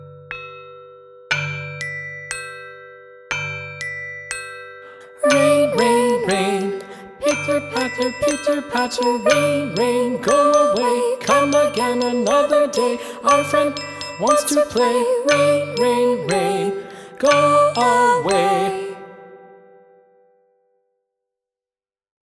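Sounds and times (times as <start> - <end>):
vocals singing a nursery rhyme: 5.0 - 19.2.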